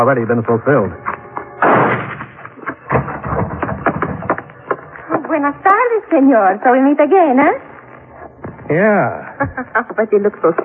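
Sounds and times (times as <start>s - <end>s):
speech: 0.0s - 1.1s, 5.4s - 7.7s, 8.7s - 10.6s
gunshots inside a low barn-like building: 1.6s - 4.2s.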